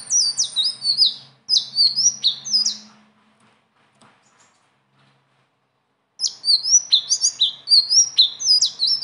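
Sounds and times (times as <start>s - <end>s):
leafbird singing: 0.0s - 3.0s, 6.2s - 9.0s.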